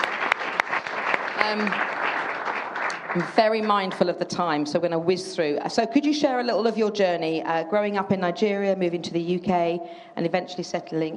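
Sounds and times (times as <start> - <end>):
audience applause: 0.0 - 4.0
speech: 1.4 - 1.9, 3.1 - 11.1.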